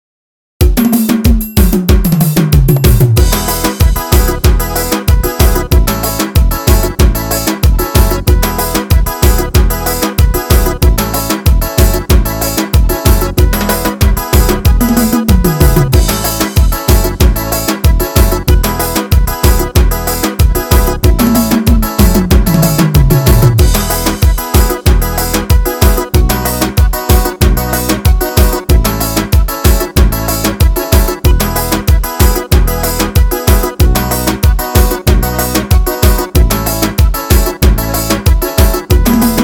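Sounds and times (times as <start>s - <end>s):
forro music with pisada rhythm: 0.6s - 39.4s.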